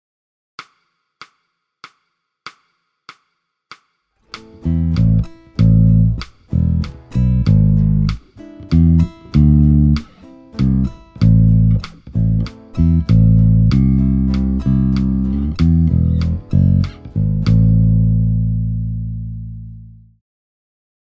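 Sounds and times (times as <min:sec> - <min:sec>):
bass in a chacarera: 0:04.4 - 0:20.2.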